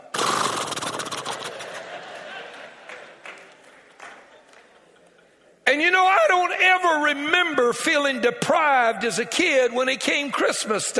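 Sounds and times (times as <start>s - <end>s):
imitated galloping horse hooves: 0.2s - 1.8s
laughter: 1.1s - 5.6s
speech: 5.7s - 10.9s.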